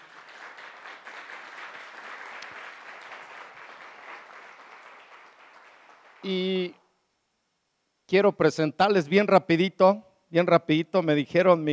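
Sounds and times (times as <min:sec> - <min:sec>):
audience applause: 0:00.0 - 0:06.3
speech: 0:06.2 - 0:06.8, 0:08.1 - 0:11.7.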